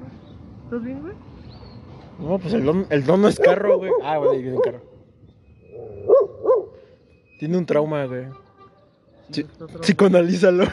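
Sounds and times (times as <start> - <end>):
speech: 0.7 - 1.3, 2.2 - 4.9, 7.4 - 8.4, 9.3 - 10.7
dog barking: 3.4 - 4.8, 5.8 - 6.8.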